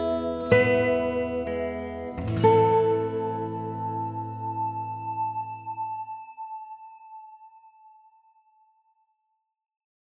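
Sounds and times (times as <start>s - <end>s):
nylon string guitar: 0.0s - 6.2s.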